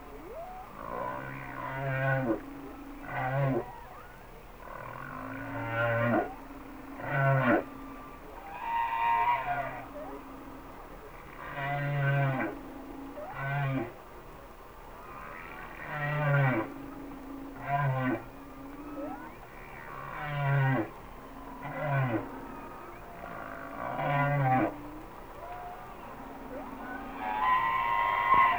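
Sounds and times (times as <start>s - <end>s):
humpback whale song moans: 0.0s - 14.1s, 14.9s - 28.5s
low rumbling tones: 0.0s - 28.5s.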